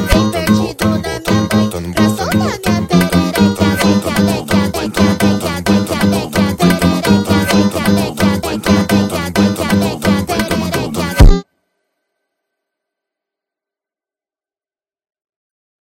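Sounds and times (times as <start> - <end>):
funk music: 0.0 - 11.4.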